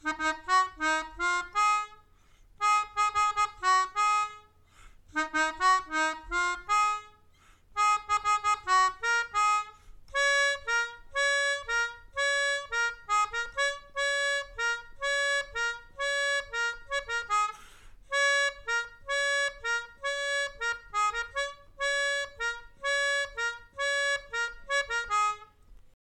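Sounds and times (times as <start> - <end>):
melodica: 0.0 - 25.7.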